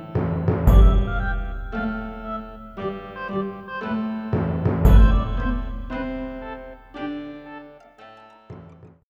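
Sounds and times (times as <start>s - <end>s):
battle anthem music: 0.5s - 7.0s.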